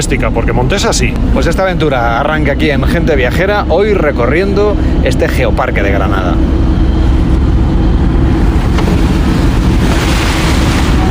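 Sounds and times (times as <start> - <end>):
speech: 0.0 - 6.6
car engine rumbling on muddy dirt track: 0.0 - 11.0
tyres crunching and sloshing on mud: 8.3 - 11.0.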